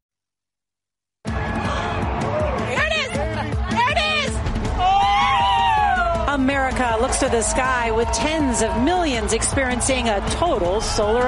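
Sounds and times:
people screaming and whooping: 1.3s - 2.8s, 4.7s - 11.2s
large crowd cheering at total solar eclipse: 1.3s - 11.2s
speech: 6.5s - 11.2s.

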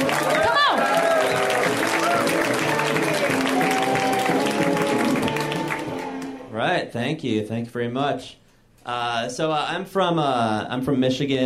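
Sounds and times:
audience applause for comedian: 0.0s - 6.5s
cheering voices: 0.0s - 6.5s
speech: 6.9s - 11.4s.

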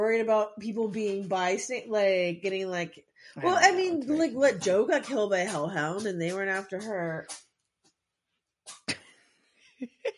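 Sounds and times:
speech: 0.0s - 7.5s
cat sneezing: 8.7s - 9.0s.

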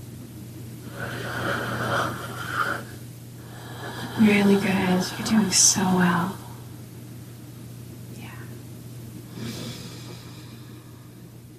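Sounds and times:
deep breath taken during a guided breathing exercise: 0.9s - 5.2s, 9.3s - 11.4s
speech: 4.2s - 6.4s.

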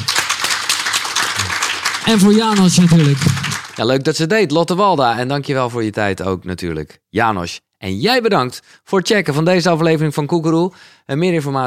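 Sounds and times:
audience applause: 0.0s - 3.9s
speech: 2.0s - 11.6s.

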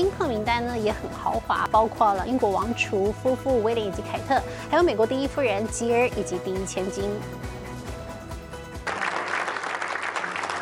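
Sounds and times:
speech: 0.0s - 7.6s
music: 0.0s - 10.6s
wedding guests applauding: 8.8s - 10.6s.

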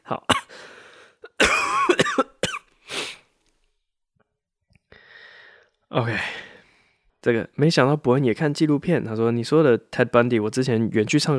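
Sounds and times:
speech: 0.1s - 0.7s, 6.0s - 6.4s, 7.2s - 11.3s
person coughing: 0.3s - 0.6s, 1.3s - 3.2s.

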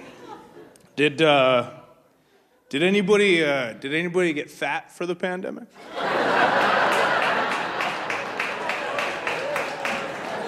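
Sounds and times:
laughter: 0.0s - 0.9s, 5.8s - 10.4s
speech: 1.0s - 1.8s, 2.7s - 6.8s
enthusiastic rhythmic clapping from audience member: 6.6s - 10.4s.

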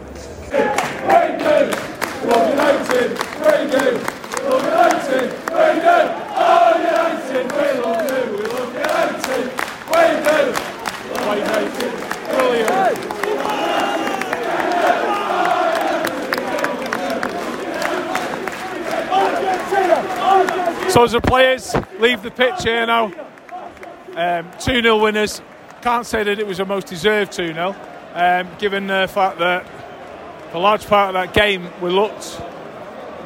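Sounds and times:
football crowd shouting and chanting: 0.0s - 33.2s
speech: 0.5s - 6.2s, 21.0s - 23.2s, 24.2s - 29.8s, 30.5s - 32.5s
sharp claps: 0.8s - 5.8s, 6.9s - 21.0s.

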